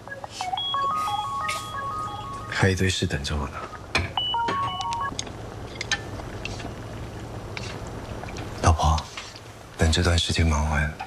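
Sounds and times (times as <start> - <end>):
telephone ringing: 0.0 - 2.9, 4.2 - 5.2
speech: 2.6 - 3.7, 9.9 - 11.0.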